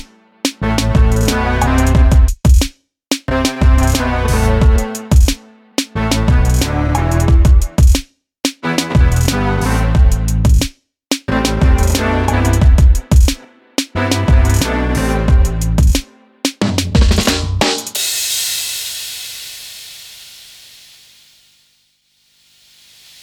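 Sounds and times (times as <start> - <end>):
funk soul rock music with beats: 0.0 - 2.4, 3.3 - 5.4, 6.0 - 8.0, 8.6 - 10.7, 11.3 - 16.0, 16.6 - 18.0.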